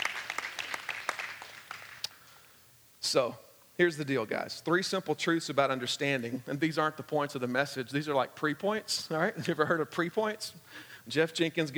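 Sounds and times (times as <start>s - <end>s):
audience applause: 0.0s - 2.1s
speech: 3.1s - 11.7s.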